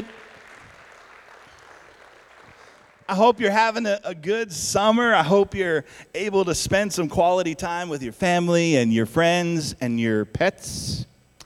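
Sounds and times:
audience clapping: 0.0s - 3.6s
speech: 3.1s - 11.1s.

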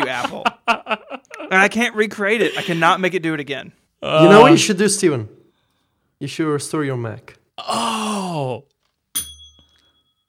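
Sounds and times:
laughter: 0.0s - 3.0s
speech: 0.1s - 0.7s, 1.5s - 5.4s, 6.2s - 8.7s
desk bell ding: 9.2s - 10.2s.

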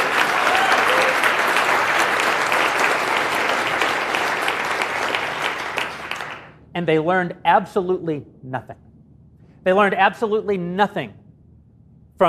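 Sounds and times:
audience applause: 0.0s - 6.5s
speech: 6.8s - 8.8s, 9.6s - 11.2s.

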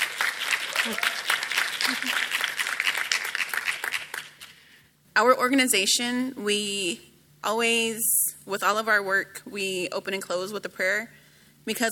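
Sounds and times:
festival audience clapping: 0.0s - 4.7s
speech: 0.8s - 1.2s, 1.9s - 2.4s, 5.2s - 11.9s.

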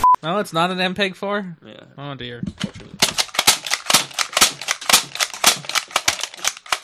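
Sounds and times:
speech: 0.2s - 2.9s
toy dart gun firing darts: 3.0s - 6.8s.

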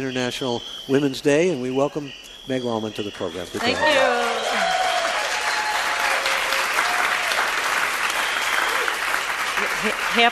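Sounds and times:
speech: 0.0s - 4.7s, 9.8s - 10.3s
high whoops and cheers: 3.6s - 9.0s
crowd clapping: 3.6s - 10.3s.

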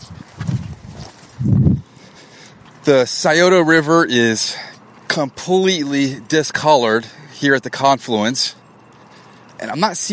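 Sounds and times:
footsteps of boots walking: 0.2s - 1.9s
speech: 2.9s - 8.6s, 9.6s - 10.1s.

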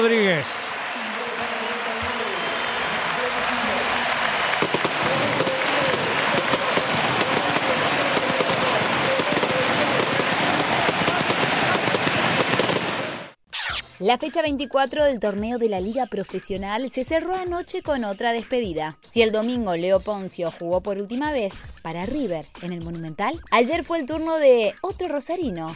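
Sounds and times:
speech: 0.0s - 0.7s, 14.0s - 25.7s
stadium crowd ovation: 0.0s - 13.4s.

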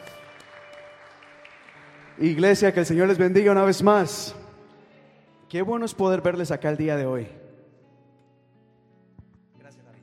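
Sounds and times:
audience applauding welcoming a speaker: 0.0s - 3.7s
speech: 2.2s - 4.4s, 5.5s - 7.4s.

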